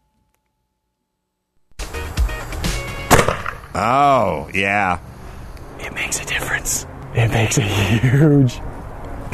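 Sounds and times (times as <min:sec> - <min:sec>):
Polish cannon shooting a tennis ball: 0:03.1 - 0:03.7
speech: 0:03.8 - 0:05.1, 0:05.8 - 0:08.7.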